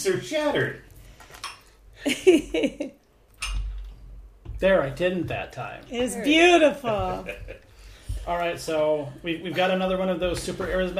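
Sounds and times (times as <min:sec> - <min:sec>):
speech: 0:00.0 - 0:00.9, 0:02.0 - 0:03.0, 0:04.6 - 0:10.9
clink of a glass: 0:03.4 - 0:03.8.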